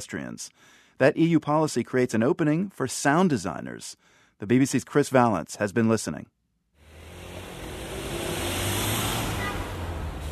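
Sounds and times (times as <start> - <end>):
speech: 0.0 - 6.4
busy city street with internal combustion engine traffic: 6.8 - 10.3.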